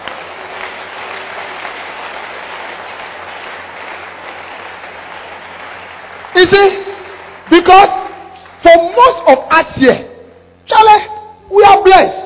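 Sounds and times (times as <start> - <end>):
large audience clapping: 0.0 - 9.2
speech: 6.4 - 6.8, 7.6 - 8.0, 9.0 - 10.1, 10.7 - 12.2.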